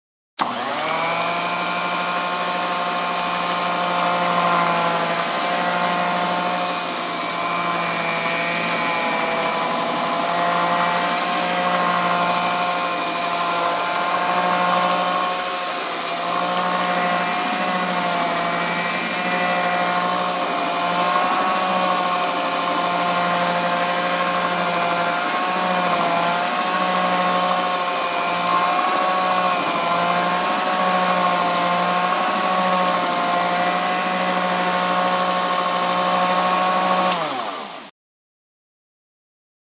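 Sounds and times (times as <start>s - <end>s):
construction noise: 0.4s - 37.9s.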